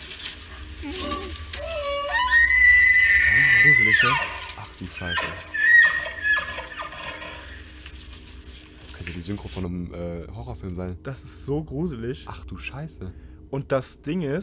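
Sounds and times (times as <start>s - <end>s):
moose bellowing: 0.4s - 7.8s
speech: 3.6s - 5.5s, 9.1s - 14.4s.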